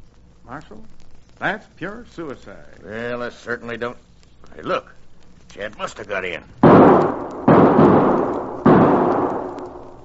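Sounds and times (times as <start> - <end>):
speech: 0.5 - 7.2
gunshots in a radio drama: 6.6 - 10.0.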